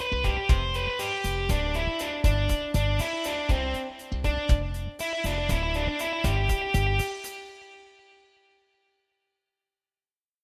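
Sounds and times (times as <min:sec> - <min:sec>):
rock band playing: 0:00.0 - 0:07.6.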